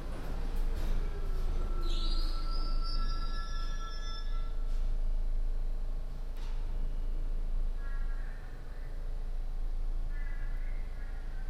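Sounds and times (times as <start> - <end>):
metal train wheels squealing: 0.0 - 4.7
train rumbling: 0.0 - 11.4.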